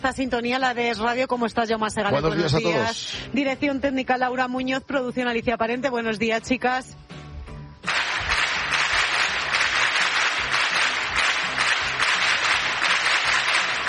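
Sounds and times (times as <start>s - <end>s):
speech: 0.0s - 7.2s
applause: 7.9s - 13.8s.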